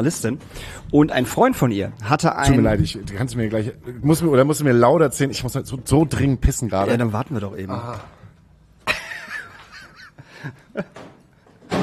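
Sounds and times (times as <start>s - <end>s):
speech: 0.0s - 8.2s, 10.4s - 11.0s
laughter: 8.8s - 11.1s
door banging shut: 10.9s - 11.8s.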